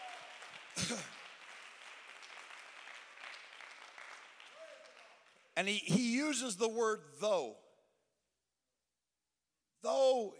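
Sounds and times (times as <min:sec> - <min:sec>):
audience clapping: 0:00.0 - 0:05.6
speech: 0:00.8 - 0:01.2, 0:05.6 - 0:07.6, 0:09.8 - 0:10.3.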